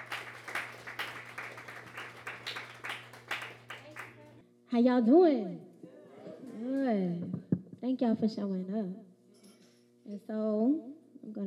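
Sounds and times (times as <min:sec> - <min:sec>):
audience applause: 0:00.0 - 0:04.4
speech: 0:04.7 - 0:05.7, 0:06.6 - 0:09.1, 0:10.1 - 0:11.4.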